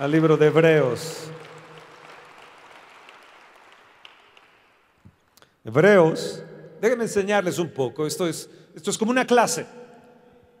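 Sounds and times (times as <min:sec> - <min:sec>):
speech: 0:00.0 - 0:01.4, 0:05.6 - 0:09.8
audience applause: 0:00.0 - 0:05.0.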